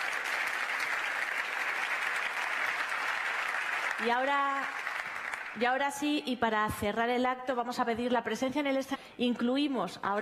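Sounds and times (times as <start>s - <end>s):
audience applause for award winners: 0.0s - 5.6s
speech: 4.0s - 4.8s, 5.5s - 10.2s.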